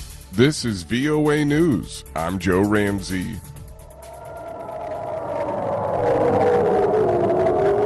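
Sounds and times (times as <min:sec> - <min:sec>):
speech: 0:00.4 - 0:03.5
air raid sirens in Ashkelon Israel: 0:03.5 - 0:07.8.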